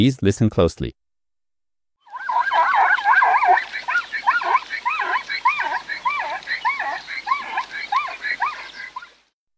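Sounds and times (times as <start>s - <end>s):
speech: 0.0s - 1.0s
zebra calls: 2.1s - 9.2s.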